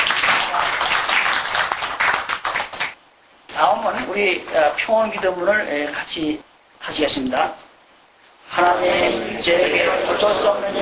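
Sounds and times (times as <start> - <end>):
audience applause: 0.0 - 3.0
speech: 3.6 - 7.7, 8.5 - 10.8.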